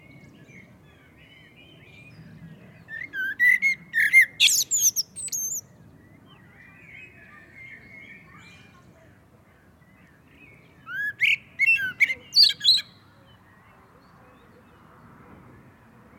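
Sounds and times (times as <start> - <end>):
common blackbird Turdus merula song: 0.0 - 16.1.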